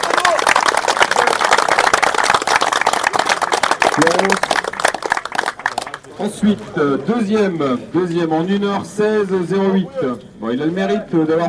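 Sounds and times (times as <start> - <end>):
audience applauding: 0.0 - 6.2
speech: 4.1 - 4.5, 6.2 - 11.4.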